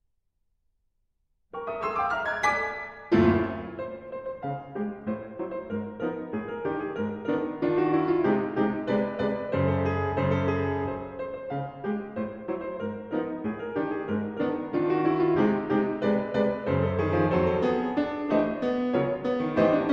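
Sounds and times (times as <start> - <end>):
moderato piano polka: 1.6 - 19.9.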